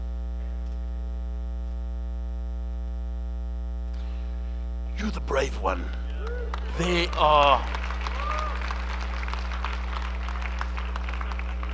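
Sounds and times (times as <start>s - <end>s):
low electrical hum: 0.0s - 11.7s
speech: 5.0s - 7.8s
audience clapping: 5.4s - 11.7s.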